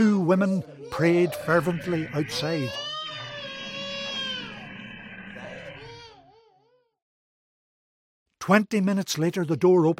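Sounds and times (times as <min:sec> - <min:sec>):
speech: 0:00.0 - 0:02.9, 0:08.5 - 0:09.9
infant screaming and crying: 0:00.6 - 0:07.0.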